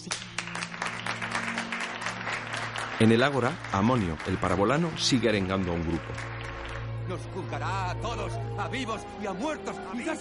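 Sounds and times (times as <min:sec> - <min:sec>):
crowd applauding in an ancient Roman film scene: 0:00.0 - 0:08.3
speech: 0:03.0 - 0:06.4, 0:07.1 - 0:10.1.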